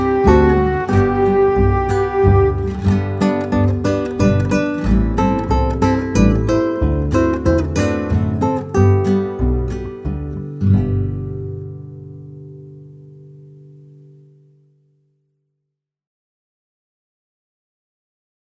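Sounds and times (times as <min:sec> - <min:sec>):
instrumental melody track: 0:00.0 - 0:14.6.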